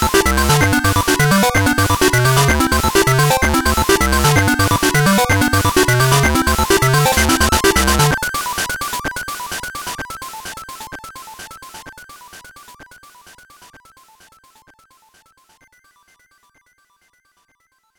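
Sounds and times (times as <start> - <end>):
pause menu music: 0.0 - 8.1.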